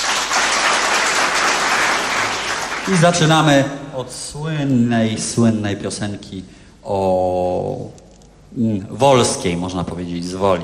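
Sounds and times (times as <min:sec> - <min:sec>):
concert audience applause: 0:00.0 - 0:03.5
speech: 0:02.9 - 0:10.6.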